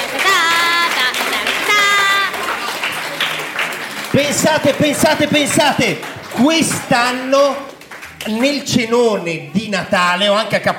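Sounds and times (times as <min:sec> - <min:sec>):
audience applause: 0:00.0 - 0:08.6
speech: 0:04.2 - 0:10.7.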